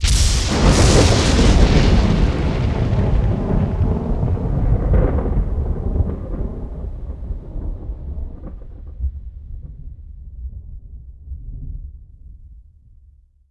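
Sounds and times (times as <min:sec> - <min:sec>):
lightning thunder strike: 0:00.0 - 0:10.5.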